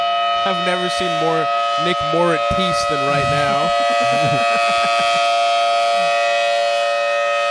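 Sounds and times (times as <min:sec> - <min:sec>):
rotating outdoor warning siren wailing: 0:00.0 - 0:07.4
speech: 0:00.4 - 0:05.3
murmur of voices: 0:02.6 - 0:05.2
laughter: 0:02.6 - 0:06.8.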